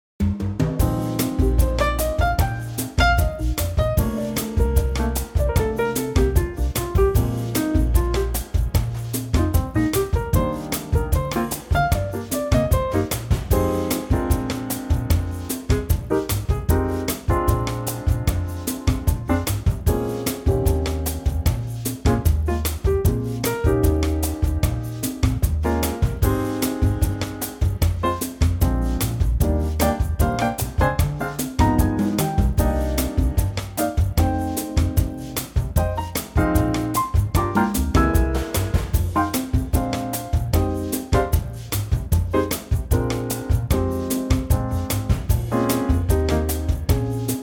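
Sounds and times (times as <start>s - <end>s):
bossa nova in E flat: 0.2s - 47.4s.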